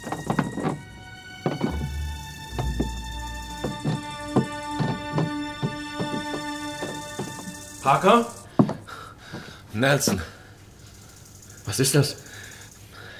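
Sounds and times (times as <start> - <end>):
heavy footsteps coming up stairs: 0.0 - 7.5, 8.5 - 10.2
speech: 7.9 - 8.4, 9.8 - 10.3, 11.7 - 12.3.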